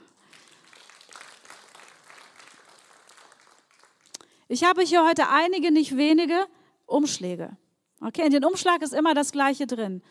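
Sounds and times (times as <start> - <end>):
audience applause: 0.0 - 4.2
speech: 4.5 - 10.0.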